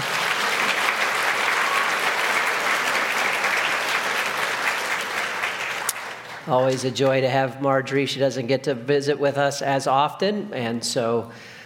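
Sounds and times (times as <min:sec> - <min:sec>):
crowd clapping: 0:00.0 - 0:06.9
speech: 0:06.5 - 0:11.5.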